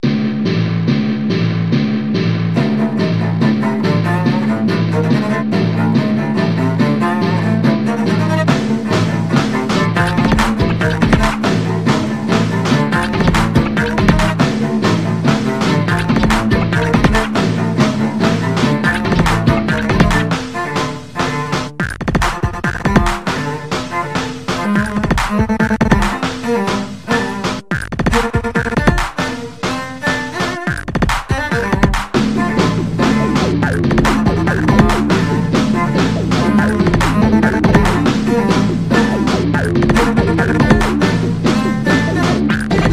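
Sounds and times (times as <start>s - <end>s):
dirge: 0.0s - 42.9s.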